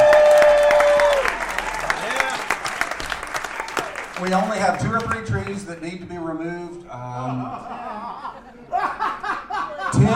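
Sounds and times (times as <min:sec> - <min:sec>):
high whistle or whoop: 0:00.0 - 0:01.4
audience applause: 0:00.0 - 0:05.7
speech: 0:05.7 - 0:07.8
laughter: 0:07.0 - 0:10.1.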